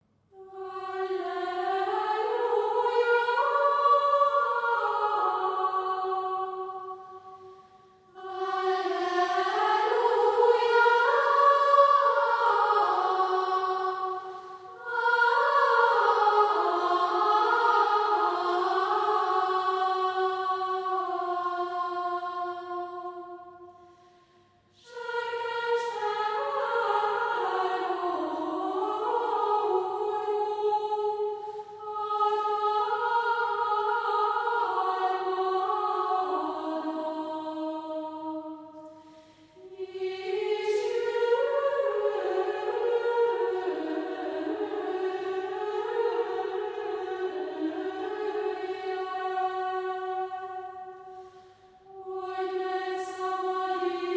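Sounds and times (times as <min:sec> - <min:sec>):
Advent Gregorian chant: 0:00.3 - 0:23.8, 0:24.8 - 0:54.1.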